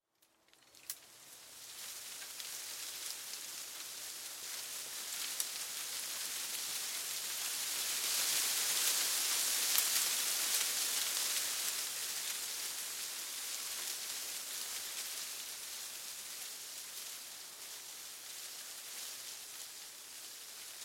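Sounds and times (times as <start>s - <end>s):
small leaves snapping: 0.2s - 3.8s
small leaves rustling in wind: 0.3s - 20.8s.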